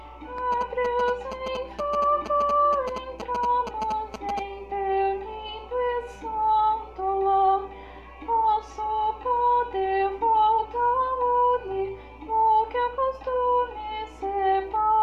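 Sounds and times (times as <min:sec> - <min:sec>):
soprano singing: 0:00.2 - 0:15.0.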